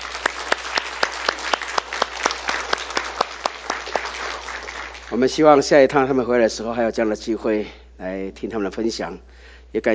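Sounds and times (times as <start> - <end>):
church congregation applauding guest speakers: 0.0 - 5.7
speech: 5.1 - 9.9.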